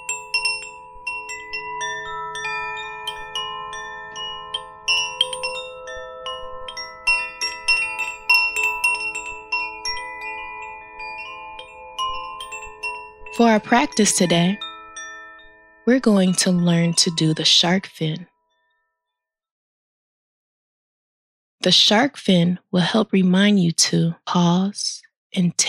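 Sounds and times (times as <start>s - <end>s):
wind chimes: 0.0s - 17.3s
speech: 13.4s - 14.6s, 15.9s - 18.3s, 21.6s - 25.6s.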